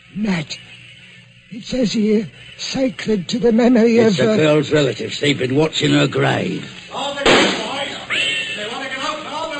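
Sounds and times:
speech: 0:00.1 - 0:00.8, 0:01.5 - 0:07.6
gunshots fired among gravestones: 0:07.2 - 0:07.8.

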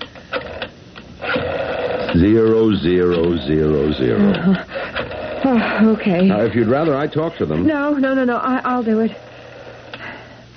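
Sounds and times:
telephone dialing to call the operator: 0:00.3 - 0:05.5
speech: 0:02.1 - 0:04.8, 0:05.4 - 0:09.3.

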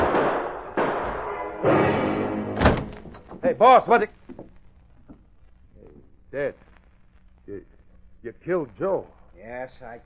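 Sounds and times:
gunshots: 0:00.0 - 0:03.3
speech: 0:03.4 - 0:04.2, 0:06.3 - 0:06.7, 0:07.5 - 0:10.0.

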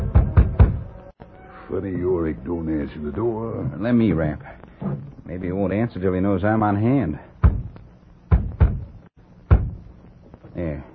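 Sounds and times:
loud heavy knocks on a door: 0:00.0 - 0:00.8, 0:07.4 - 0:09.9
speech: 0:01.7 - 0:07.3.

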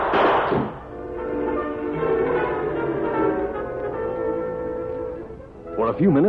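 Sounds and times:
gunshot: 0:00.0 - 0:00.9
sustained tonal drone of music: 0:00.9 - 0:05.9.

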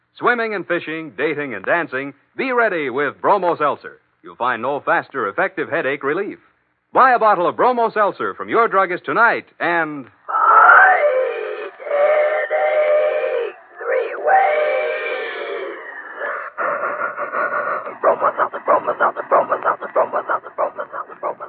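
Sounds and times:
speech: 0:00.2 - 0:10.2
chord-like train whistle blasts: 0:11.3 - 0:15.6
rapid rhythmic train chugging: 0:11.3 - 0:21.4.

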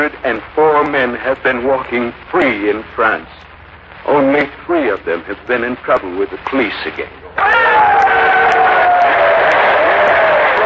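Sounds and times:
speech: 0:00.0 - 0:07.8
high shouts: 0:07.4 - 0:10.6
large crowd applauding and cheering: 0:07.4 - 0:10.6.

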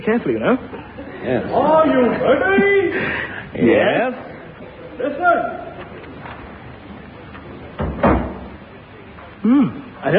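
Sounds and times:
speech: 0:00.0 - 0:04.2, 0:09.4 - 0:10.1
door closing: 0:07.7 - 0:08.7.

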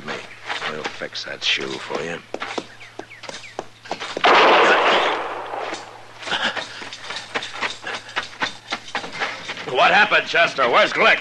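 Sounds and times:
speech: 0:00.7 - 0:02.6, 0:09.7 - 0:11.1
gunshot: 0:04.2 - 0:06.0.

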